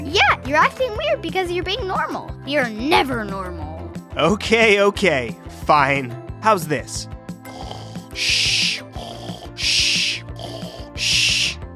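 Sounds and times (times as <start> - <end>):
soft tonal music: 0.0 - 11.7
speech: 0.5 - 7.2, 8.2 - 8.5
loud breathy snores: 7.4 - 11.6.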